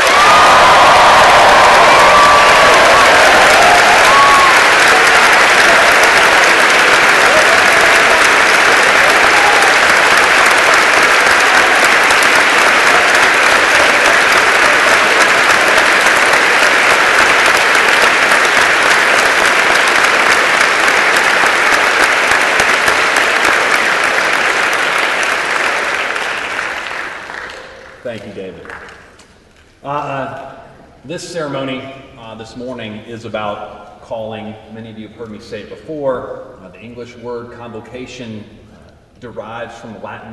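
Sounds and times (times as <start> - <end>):
warm round of applause: 0.0 - 29.2
speech: 31.2 - 38.6, 39.2 - 40.3.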